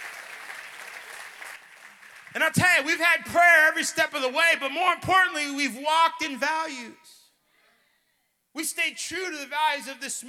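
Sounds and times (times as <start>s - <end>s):
audience clapping: 0.0s - 2.6s
speech: 2.4s - 7.2s, 8.6s - 10.2s.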